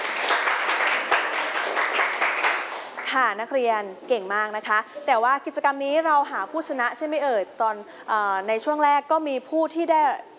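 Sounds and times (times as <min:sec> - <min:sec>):
students clapping hands: 0:00.0 - 0:03.1
speech: 0:03.1 - 0:10.3.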